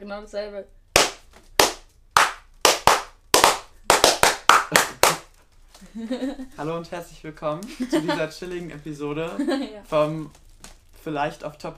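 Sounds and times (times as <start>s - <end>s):
speech: 0.0s - 0.8s, 5.9s - 10.4s, 11.0s - 11.7s
loud hand claps: 1.0s - 5.3s
laughter: 5.8s - 6.6s, 7.7s - 8.4s.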